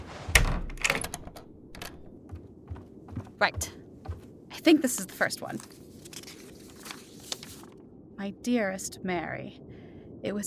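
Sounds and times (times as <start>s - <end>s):
front door blowing open: 0.0s - 2.1s
speech: 3.4s - 3.8s, 4.6s - 5.8s, 8.2s - 10.4s.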